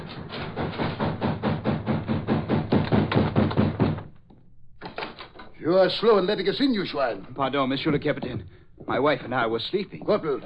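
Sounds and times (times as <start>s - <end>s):
heavy rapid pounding on a door: 0.2s - 4.2s
speech: 5.6s - 10.4s.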